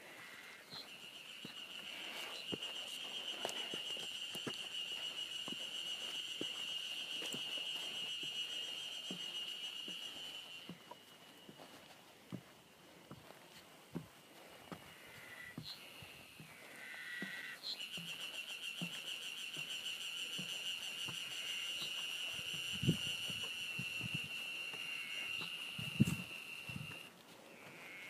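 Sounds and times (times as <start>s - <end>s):
Ezo harusemi cicada song near Mount Tanzawa Japan: 0.0s - 11.6s, 14.9s - 28.0s.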